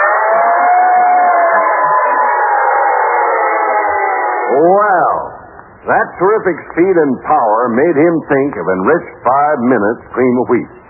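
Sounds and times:
fire engine siren wailing: 0.0s - 5.3s
speech: 5.8s - 10.8s.

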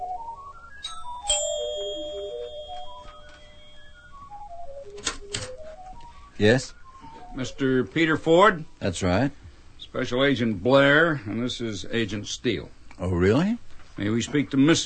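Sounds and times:
musical doorbell chime: 0.6s - 5.0s
sharp ringing strike: 0.9s - 4.0s
speech: 6.4s - 6.8s, 7.4s - 14.8s.

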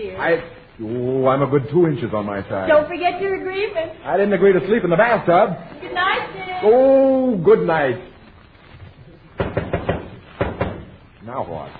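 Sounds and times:
speech: 0.0s - 8.1s, 11.2s - 11.7s
knocking on a door: 9.4s - 10.9s.

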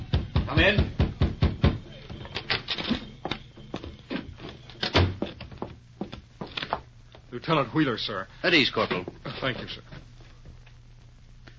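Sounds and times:
low steady hum: 0.0s - 11.5s
knocking on a wooden door: 0.1s - 1.8s
speech: 0.5s - 0.9s, 7.4s - 9.9s.

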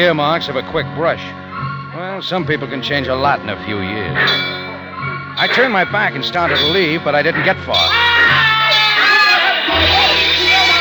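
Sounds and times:
speech: 0.0s - 1.4s, 2.0s - 4.6s, 5.4s - 8.4s
crowd shouting wildly: 4.2s - 10.7s.

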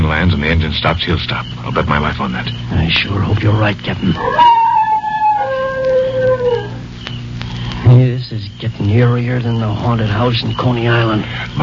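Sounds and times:
speech: 0.2s - 4.6s, 7.9s - 11.6s
dog howling: 4.1s - 6.9s.

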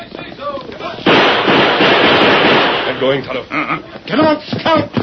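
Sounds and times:
gunshots fired: 1.0s - 3.2s
speech: 3.0s - 4.9s.

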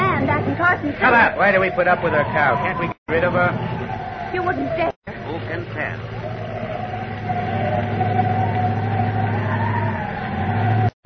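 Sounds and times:
howling wind in a dust storm: 0.0s - 11.0s
speech: 0.6s - 6.3s.

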